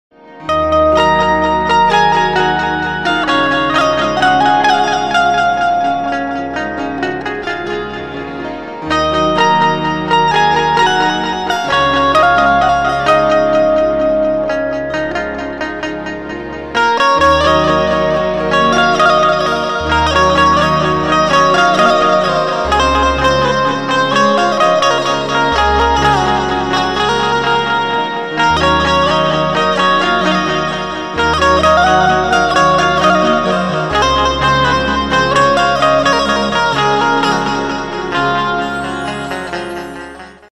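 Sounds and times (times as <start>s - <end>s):
Gujarati song banjo ringtone music: 0.4s - 40.5s.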